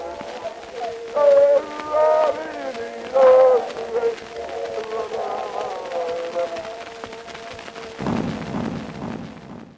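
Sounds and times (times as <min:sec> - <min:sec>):
Tahitian chorus singing on Edison Blue Amberol cylinder: 0:00.0 - 0:08.0.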